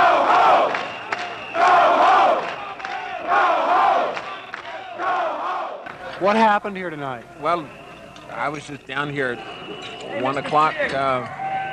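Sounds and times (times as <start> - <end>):
people coming out of bars screaming: 0.0 - 5.8, 9.2 - 11.7
speech: 6.2 - 11.4.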